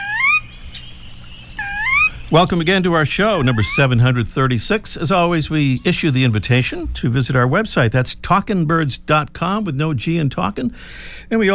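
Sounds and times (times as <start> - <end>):
sora whinny call: 0.0 - 2.4, 3.3 - 4.3
low rumble: 0.4 - 11.5
speech: 2.3 - 11.5.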